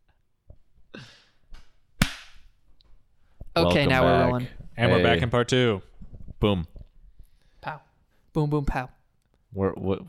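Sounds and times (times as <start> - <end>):
sharp hand clap for syncing recording: 2.0 - 2.4
speech: 3.6 - 6.7, 7.6 - 7.8, 8.4 - 10.0.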